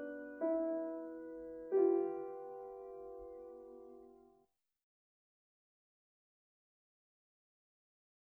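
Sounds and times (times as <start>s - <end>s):
solo piano music in major seconds: 0.0s - 4.4s.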